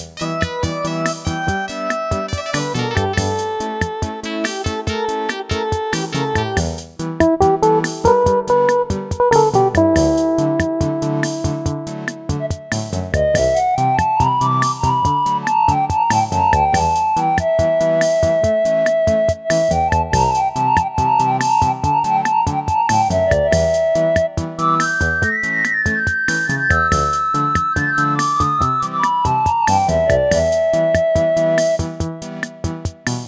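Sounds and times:
Casio MT-68 electronic keyboard performance: 0:00.2 - 0:33.1.

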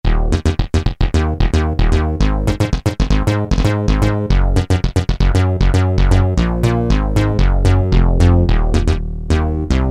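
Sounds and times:
Yamaha TG33 synthesizer: 0:00.1 - 0:09.9.

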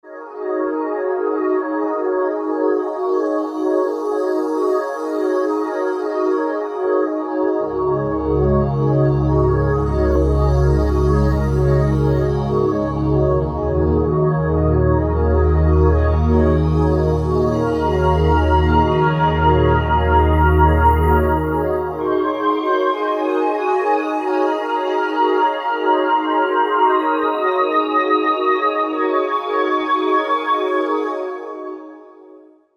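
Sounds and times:
synthesizer: 0:00.0 - 0:32.4.

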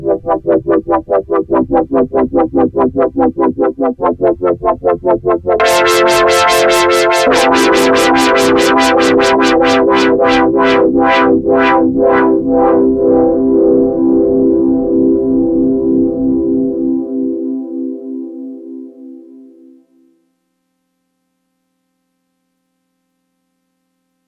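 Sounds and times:
polyphonic tremolo filter effect: 0:00.0 - 0:16.6.

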